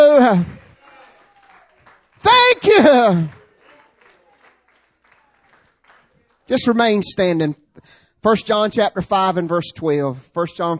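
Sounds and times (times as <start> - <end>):
audience applause: 0.0 - 6.5
speech: 0.2 - 0.6, 2.2 - 3.4, 6.5 - 10.7.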